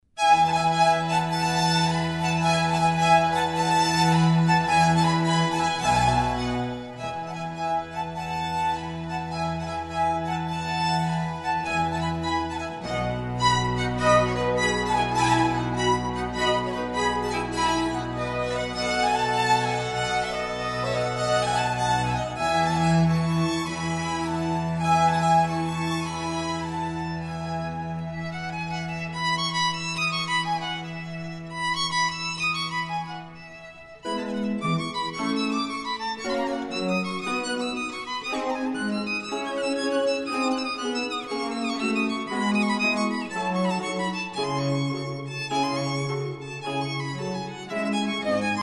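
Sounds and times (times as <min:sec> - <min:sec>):
concerto violin: 0:00.2 - 0:48.6.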